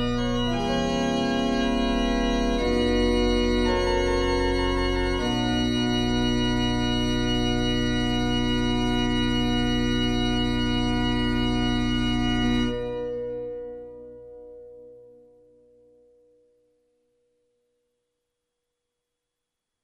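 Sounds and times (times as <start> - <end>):
organ toccata offertory: 0.0 - 14.7.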